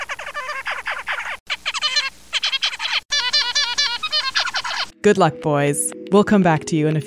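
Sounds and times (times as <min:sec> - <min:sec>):
zebra finch song: 0:00.0 - 0:05.0
speech: 0:05.0 - 0:07.0.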